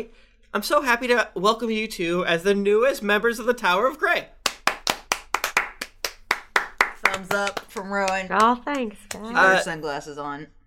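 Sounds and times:
speech: 0.0 - 4.4, 7.2 - 10.6
few people clapping: 4.4 - 9.7.

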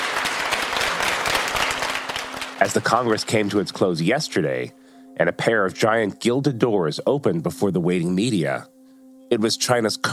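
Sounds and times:
crowd applauding China's General Secretary and Political Bureau Standing Committee at the Party Congress: 0.0 - 3.8
speech: 2.6 - 8.7, 9.3 - 10.1.

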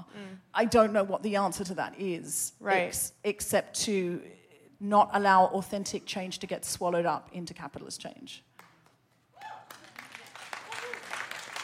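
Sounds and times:
speech: 0.1 - 8.5
crowd applauding: 9.4 - 11.6.

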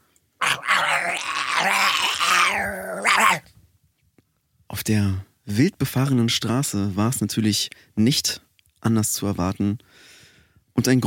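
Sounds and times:
dog growling: 0.4 - 3.4
speech: 1.6 - 2.0, 4.8 - 10.1, 10.8 - 11.0.

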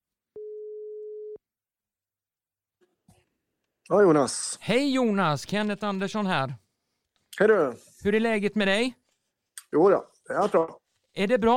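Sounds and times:
telephone ringing tone as a call is placed: 0.4 - 1.4
speech: 3.9 - 6.6, 7.4 - 9.0, 9.7 - 11.5.

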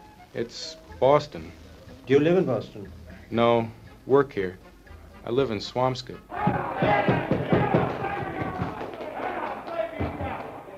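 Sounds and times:
speech: 0.4 - 7.1
bar crowd shouting and cheering while watching a baseball game: 6.3 - 10.7
thumps: 6.4 - 9.0.

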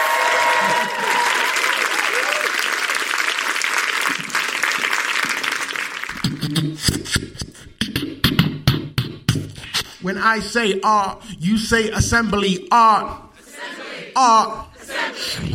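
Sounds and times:
festival audience applause and cheering for a rapper and beatboxer: 0.0 - 6.4
rhythmic percussive sounds: 6.1 - 10.6
speech: 6.5 - 7.4, 10.0 - 13.2, 14.2 - 15.4.

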